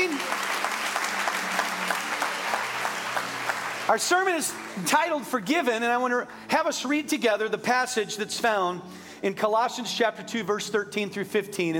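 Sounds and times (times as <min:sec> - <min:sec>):
congregation applauding at an Easter church service: 0:00.0 - 0:05.9
speech: 0:03.9 - 0:11.7.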